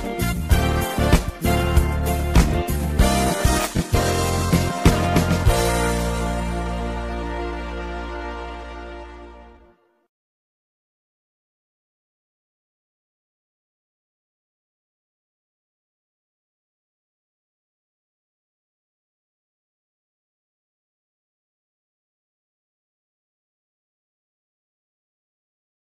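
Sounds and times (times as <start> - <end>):
music beat: 0.0 - 9.2.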